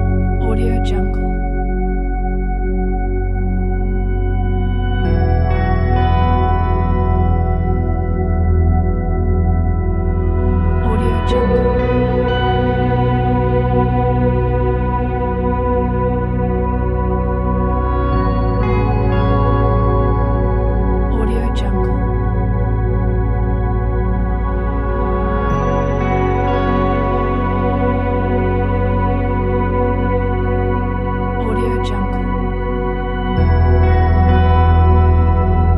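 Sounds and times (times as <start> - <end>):
ambient space soundscape: 0.0 - 35.7.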